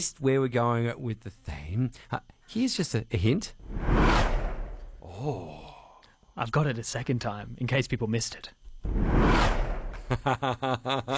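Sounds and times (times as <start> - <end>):
speech: 0.0 - 4.0, 5.2 - 5.6, 6.4 - 11.1
whooshing rush: 3.6 - 5.0, 8.9 - 10.0
laughter: 10.0 - 11.1.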